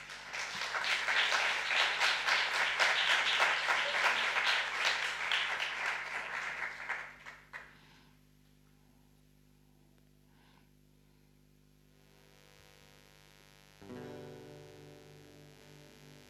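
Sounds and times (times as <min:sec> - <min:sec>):
audience applause: 0:00.0 - 0:07.7.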